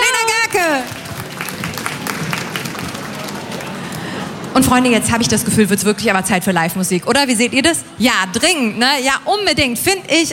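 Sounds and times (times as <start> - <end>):
audience applause: 0.6 - 4.6
speech: 4.6 - 10.3.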